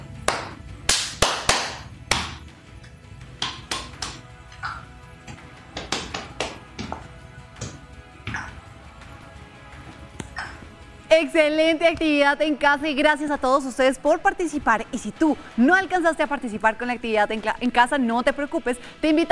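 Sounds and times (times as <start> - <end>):
body percussion made by children with claps, slaps and taps: 0.2 - 2.5, 3.3 - 8.7
speech: 11.1 - 19.3.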